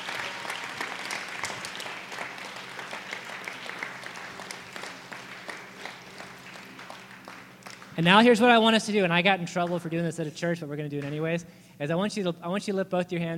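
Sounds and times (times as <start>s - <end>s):
audience round of applause: 0.0s - 8.3s
speech: 8.0s - 13.3s.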